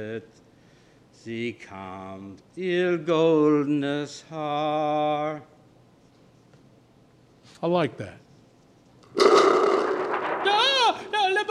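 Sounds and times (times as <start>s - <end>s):
speech: 0.0s - 0.5s, 1.2s - 5.6s, 7.6s - 8.2s
bomb explosion: 9.2s - 11.2s.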